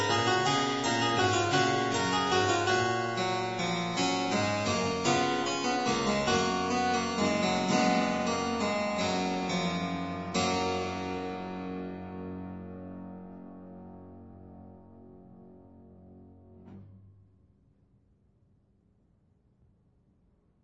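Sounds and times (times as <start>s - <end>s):
harpsichord piece for two manuals: 0.0s - 13.3s.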